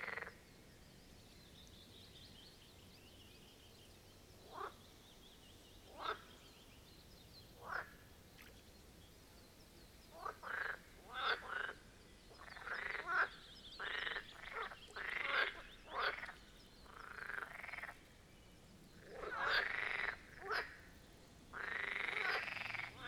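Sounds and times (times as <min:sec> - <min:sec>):
marsh frogs croaking: 0:00.0 - 0:00.4, 0:04.4 - 0:04.8, 0:05.9 - 0:06.4, 0:07.6 - 0:08.5, 0:10.1 - 0:18.1, 0:18.9 - 0:23.0.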